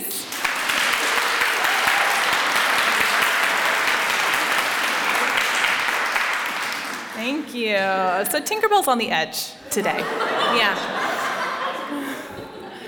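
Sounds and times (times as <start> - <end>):
audience clapping and applause: 0.0 - 7.5
speech: 7.4 - 11.0
laughter: 9.7 - 12.8.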